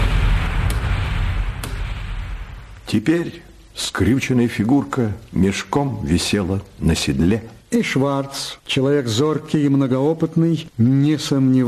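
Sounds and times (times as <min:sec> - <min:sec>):
carbine rifle gunshot: 0:00.0 - 0:02.7
speech: 0:02.9 - 0:11.6.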